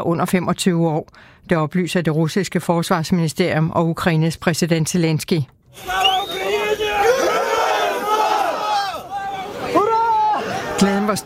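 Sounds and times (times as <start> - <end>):
speech: 0.0 - 6.4, 10.8 - 11.2
crowd cheering and shouting jubilantly: 5.7 - 11.2.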